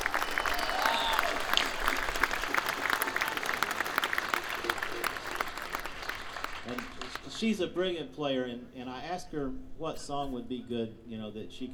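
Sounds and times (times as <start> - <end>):
audience applause welcoming a mandolin player onstage: 0.0 - 7.5
speech: 7.4 - 11.7.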